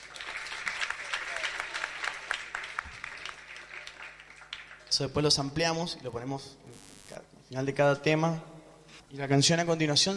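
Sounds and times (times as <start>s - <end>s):
audience applause: 0.0s - 4.9s
speech: 5.0s - 6.9s, 7.5s - 8.5s, 9.1s - 10.1s.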